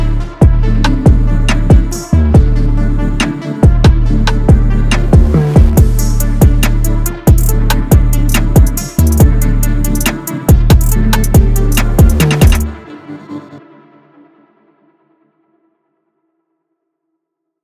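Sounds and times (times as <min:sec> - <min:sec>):
trap beat: 0:00.0 - 0:12.8.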